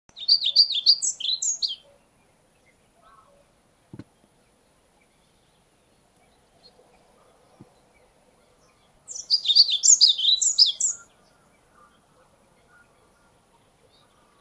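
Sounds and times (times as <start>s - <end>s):
pied flycatcher singing: 0.1s - 1.9s, 8.7s - 11.2s.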